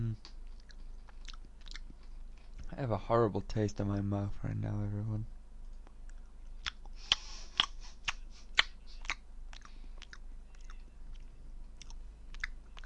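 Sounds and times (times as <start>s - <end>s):
low steady hum: 0.0s - 12.8s
chewing Marmite flavored peanuts: 0.2s - 2.7s, 6.0s - 12.8s
speech: 2.7s - 5.4s.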